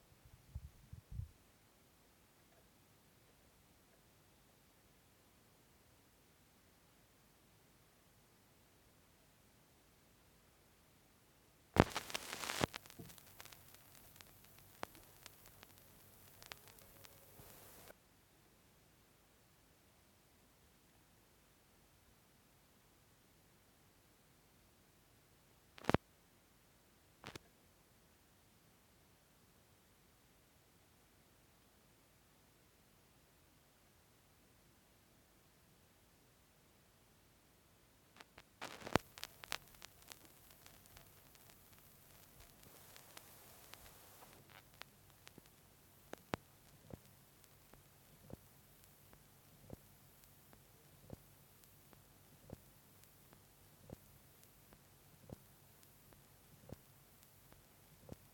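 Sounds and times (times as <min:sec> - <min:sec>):
vinyl record noise: 0:00.0 - 0:18.0, 0:24.6 - 0:26.2, 0:27.1 - 0:27.6, 0:36.4 - 0:58.3.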